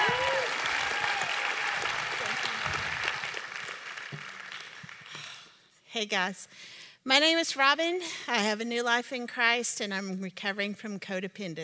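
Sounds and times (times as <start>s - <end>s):
audience applause: 0.0s - 5.4s
speech: 6.0s - 11.6s.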